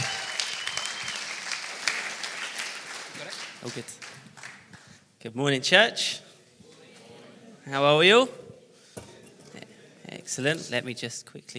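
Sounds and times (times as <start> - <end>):
church audience applause: 0.0 - 4.9
speech: 3.6 - 4.1, 5.2 - 6.2, 7.7 - 8.4, 10.3 - 11.5.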